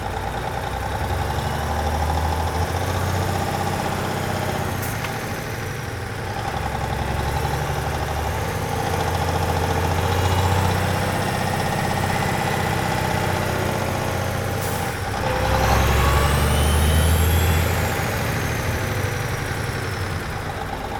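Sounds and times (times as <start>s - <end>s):
semi-truck driving: 0.0s - 20.9s.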